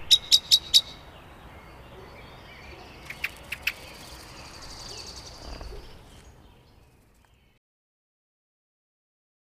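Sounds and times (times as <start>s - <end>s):
common blackbird singing: 0.0s - 7.6s.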